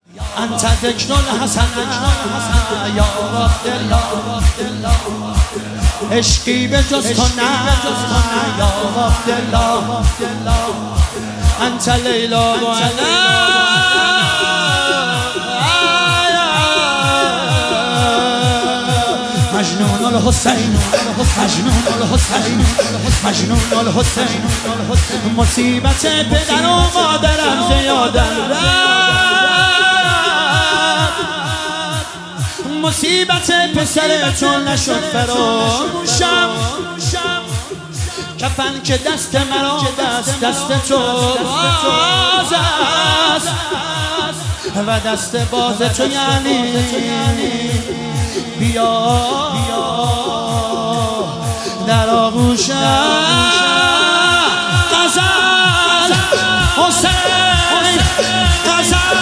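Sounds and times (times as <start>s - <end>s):
devotional singing: 0.0s - 59.1s.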